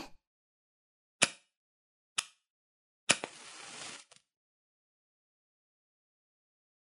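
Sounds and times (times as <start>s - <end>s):
relaxed ear cleaning with incense: 3.2s - 4.2s.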